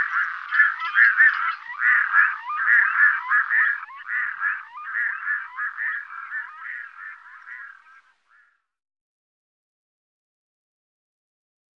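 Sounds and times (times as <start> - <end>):
red-throated loon nasal quacking calls: 0.0 - 8.6.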